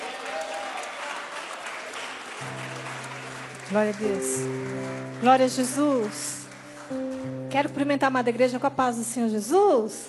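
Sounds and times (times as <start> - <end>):
audience applause: 0.0 - 7.5
speech: 3.7 - 10.0.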